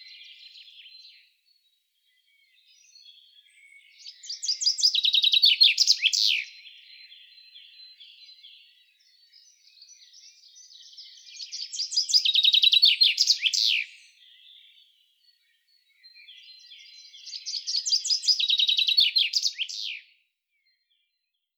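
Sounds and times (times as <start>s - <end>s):
common chaffinch Fringilla coelebs singing: 3.7s - 6.6s, 9.8s - 14.8s, 16.2s - 20.1s.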